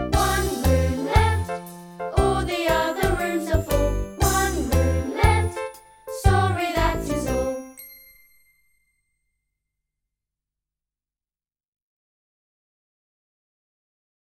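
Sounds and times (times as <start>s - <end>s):
choir singing: 0.0s - 7.7s.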